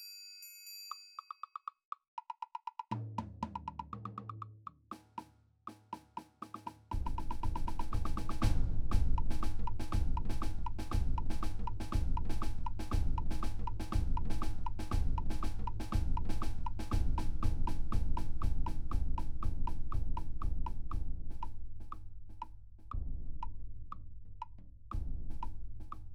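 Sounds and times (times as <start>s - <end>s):
snare drum: 2.9s - 22.5s
ride cymbal: 6.9s - 21.5s
concert bass drum: 6.9s - 26.1s.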